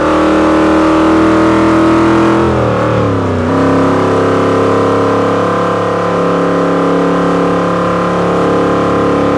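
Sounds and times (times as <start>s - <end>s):
vehicles cruising: 0.0s - 9.3s.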